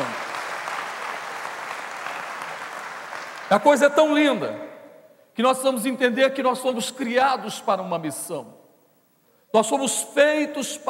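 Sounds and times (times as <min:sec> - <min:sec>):
audience applauding: 0:00.0 - 0:03.8
speech: 0:03.5 - 0:04.7, 0:05.4 - 0:08.6, 0:09.5 - 0:10.8.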